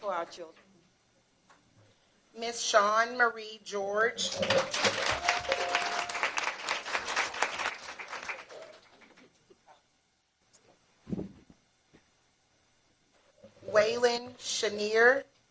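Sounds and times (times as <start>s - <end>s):
speech: 0.1s - 0.8s, 2.3s - 6.1s, 14.4s - 15.3s
audience applause: 4.3s - 9.3s.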